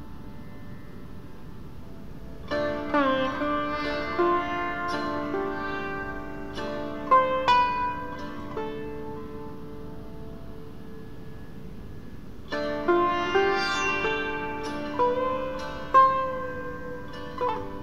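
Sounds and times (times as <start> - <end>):
sitar music for sleep and meditation: 0.0 - 17.8.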